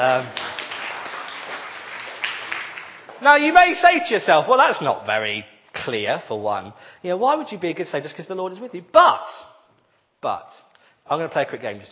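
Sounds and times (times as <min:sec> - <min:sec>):
speech: 0:00.0 - 0:00.4, 0:03.2 - 0:09.5, 0:10.2 - 0:11.9
audience clapping: 0:00.0 - 0:03.8.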